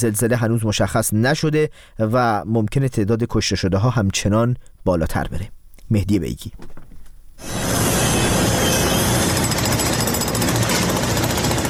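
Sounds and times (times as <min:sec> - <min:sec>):
speech: 0:00.0 - 0:06.8
rescue workers' drilling machinery: 0:07.4 - 0:11.6
rescue workers' power tools: 0:07.4 - 0:11.6.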